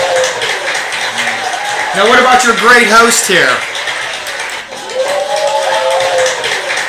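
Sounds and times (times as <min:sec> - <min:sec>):
audience clapping: 0:00.0 - 0:06.8
speech: 0:02.0 - 0:03.8.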